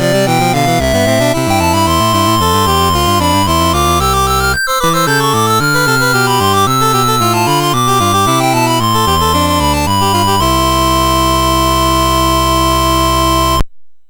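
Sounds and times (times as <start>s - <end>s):
chiptune fugue on MOS6581R3 sound chip: 0.0s - 13.6s.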